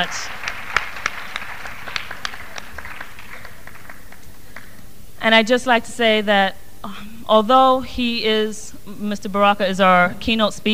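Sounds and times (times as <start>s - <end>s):
speech: 0.0s - 0.4s, 5.2s - 10.7s
audience applause: 0.0s - 4.8s.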